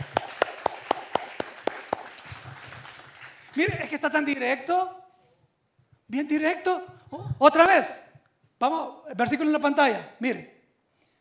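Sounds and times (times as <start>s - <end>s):
person clapping hands: 0.0s - 3.9s
speech: 3.6s - 5.0s, 6.1s - 10.6s.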